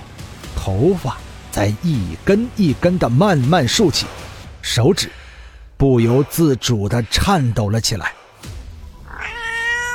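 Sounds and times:
speech: 0.7s - 5.2s, 5.8s - 8.2s
cat meowing in a washroom: 9.1s - 9.9s.

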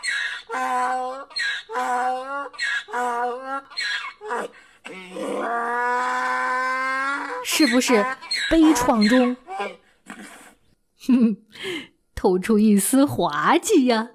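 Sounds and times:
donkey braying: 0.0s - 10.6s
speech: 7.6s - 9.8s, 12.2s - 14.1s.

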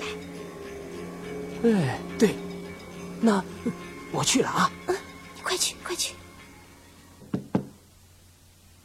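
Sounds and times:
speech: 1.6s - 2.4s, 3.3s - 4.8s
knocking on a door: 7.3s - 7.7s.

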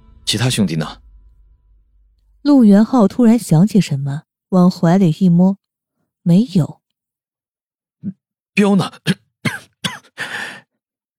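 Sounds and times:
speech: 0.3s - 1.0s, 2.4s - 5.6s, 6.2s - 6.8s, 8.0s - 10.4s
man coughing: 8.9s - 10.3s.

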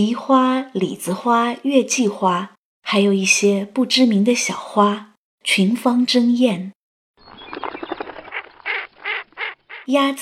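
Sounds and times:
speech: 0.0s - 6.8s, 9.9s - 10.2s
small birds singing: 7.2s - 9.9s.

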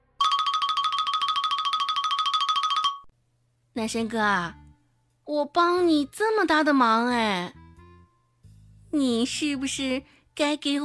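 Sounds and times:
phone ringing: 0.2s - 3.1s
speech: 3.8s - 4.6s, 5.3s - 7.6s, 8.9s - 10.8s.

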